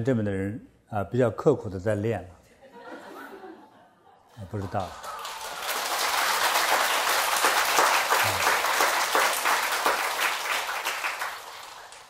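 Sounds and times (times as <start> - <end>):
speech: 0.0 - 2.4, 4.4 - 5.1
laughter: 2.6 - 5.4
audience applause at a live comedy performance: 4.4 - 12.0.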